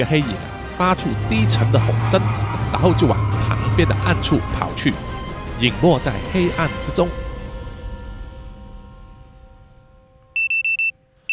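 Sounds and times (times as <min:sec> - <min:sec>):
speech: 0:00.0 - 0:07.2
alarm clock ringing: 0:10.4 - 0:11.3.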